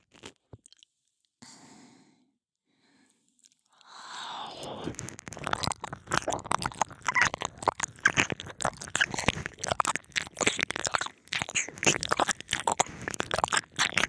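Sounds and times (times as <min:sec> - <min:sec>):
soothing ear licking: 0:03.8 - 0:14.0.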